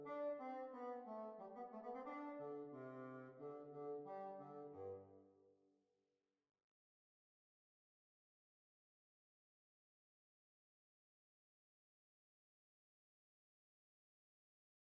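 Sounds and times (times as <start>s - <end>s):
hornpipe tune: 0.0s - 5.1s.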